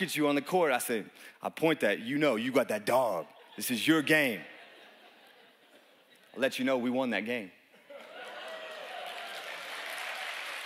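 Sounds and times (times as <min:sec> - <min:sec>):
speech: 0:00.0 - 0:04.5, 0:06.4 - 0:07.6
laughter: 0:02.9 - 0:06.8, 0:07.8 - 0:09.5
audience clapping: 0:07.9 - 0:10.6.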